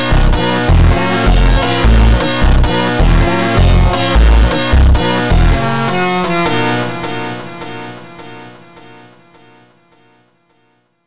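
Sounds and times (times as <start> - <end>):
super slowed funk music: 0.0 - 8.6.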